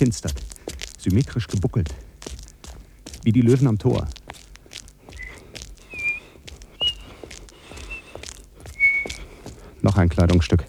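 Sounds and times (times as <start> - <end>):
speech: 0.0 - 0.4, 1.0 - 2.1, 3.2 - 4.2, 10.0 - 10.6
person whistling short thin high notes: 5.2 - 9.3.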